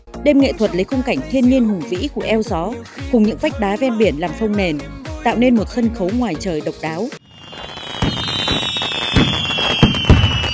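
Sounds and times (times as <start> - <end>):
speech: 0.2 - 7.2
fireworks exploding over the sea above coastal cliffs at a night show: 7.2 - 10.5
steady crackling hiss of fireworks: 7.2 - 10.5.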